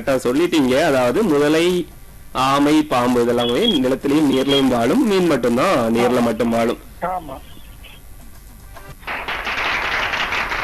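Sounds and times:
speech: 0.0s - 7.5s
applause: 9.0s - 10.6s.

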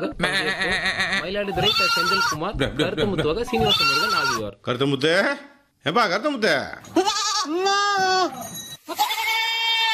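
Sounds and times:
goats bleating as a herder drives them along: 0.0s - 2.4s, 3.5s - 4.5s, 6.9s - 8.3s, 8.9s - 9.9s
speech: 0.0s - 9.1s.

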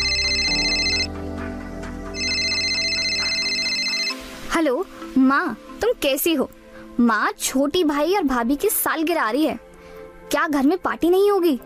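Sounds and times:
phone ringtone: 0.0s - 1.2s, 2.1s - 4.2s
speech: 4.6s - 9.7s, 10.3s - 11.6s.

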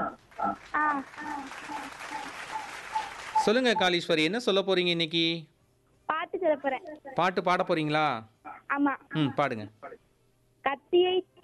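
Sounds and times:
applause: 0.2s - 4.0s
speech: 0.4s - 2.8s, 3.4s - 5.5s, 6.4s - 10.0s, 10.6s - 11.3s.

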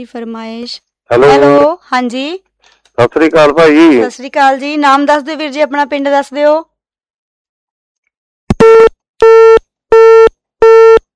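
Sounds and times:
speech: 0.0s - 6.7s
telephone busy tone after a call is cut off: 8.6s - 11.0s.

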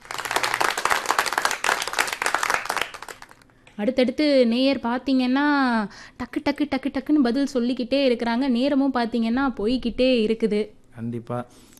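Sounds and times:
crowd applause for a radio caller: 0.0s - 3.4s
speech: 3.8s - 11.7s.

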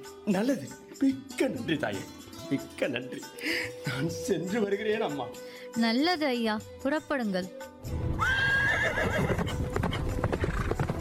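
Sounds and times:
speech: 0.2s - 8.1s
horse whinnying with a high wavering call: 8.2s - 10.9s
horse hooves clip-clopping: 9.0s - 10.9s.

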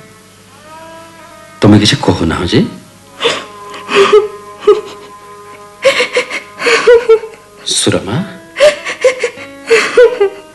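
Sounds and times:
speech: 1.6s - 2.8s
woman crying: 3.1s - 7.6s, 8.4s - 10.5s.

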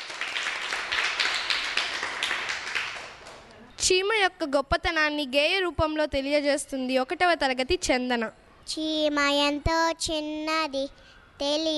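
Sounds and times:
audience clapping at a school recital: 0.0s - 3.6s
speech: 3.9s - 11.7s.

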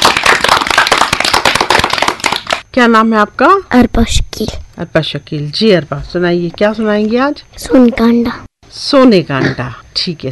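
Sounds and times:
loud applause: 0.0s - 2.6s
speech: 2.8s - 10.3s.

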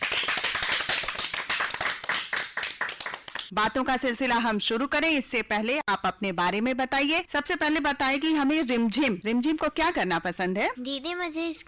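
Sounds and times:
group of children clapping loudly: 0.0s - 3.5s
speech: 3.5s - 11.6s.

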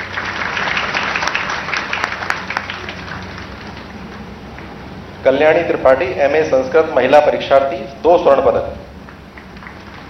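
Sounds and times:
audience applause: 0.0s - 4.8s, 9.0s - 10.0s
speech: 5.2s - 8.8s.

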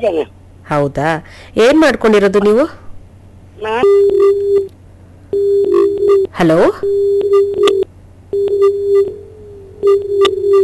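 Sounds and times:
speech: 0.0s - 2.8s, 3.6s - 9.2s, 9.8s - 10.6s
telephone busy tone after a phone call drops on air: 3.8s - 4.7s, 5.3s - 10.6s.

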